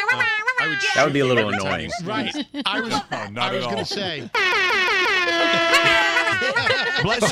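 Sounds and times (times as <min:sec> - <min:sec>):
voice imitating a blaring horn: 0:00.0 - 0:01.7, 0:04.3 - 0:06.8
laughter: 0:00.0 - 0:07.3
speech: 0:00.1 - 0:07.3.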